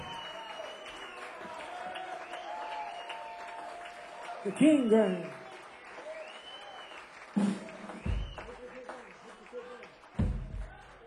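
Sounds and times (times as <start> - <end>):
speech: 4.4 - 5.4
kick drum ringing on stage: 8.0 - 8.5, 10.2 - 10.9.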